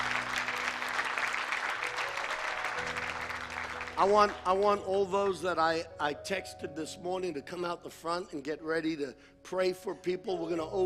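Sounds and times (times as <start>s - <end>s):
church audience applause: 0.0s - 4.9s
speech: 4.0s - 10.8s.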